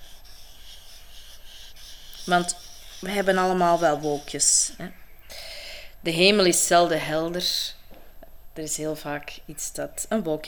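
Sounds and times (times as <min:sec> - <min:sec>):
drawing strokes on paper: 0:00.0 - 0:04.8
speech: 0:02.3 - 0:05.0, 0:06.0 - 0:07.8, 0:08.6 - 0:10.4.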